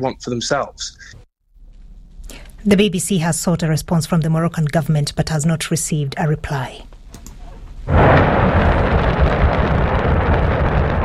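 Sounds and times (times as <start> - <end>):
speech: 0.0 - 1.2, 2.6 - 6.9
Shenzhou 23 rocket launching from the Jiuquan launch center in Inner Mongolia: 7.9 - 11.0.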